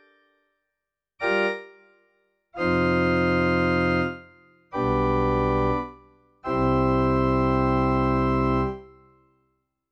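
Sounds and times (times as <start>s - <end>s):
PX-3 organ: 2.6s - 9.0s.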